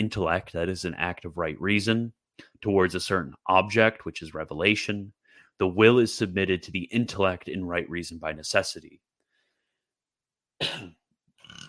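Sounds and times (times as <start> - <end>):
speech: 0.0 - 9.1, 10.6 - 11.0
burp caused by a bubbly drink: 10.6 - 11.6.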